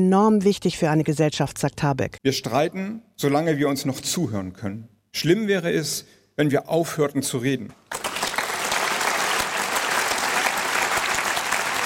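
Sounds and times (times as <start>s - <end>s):
speech: 0.0s - 8.0s
audience applause: 7.9s - 11.8s.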